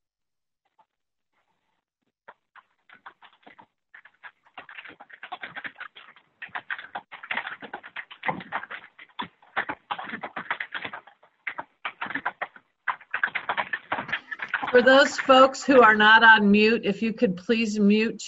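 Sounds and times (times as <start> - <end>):
person typing on a keyboard during a conference call: 2.3 - 16.8
speech: 14.8 - 18.2.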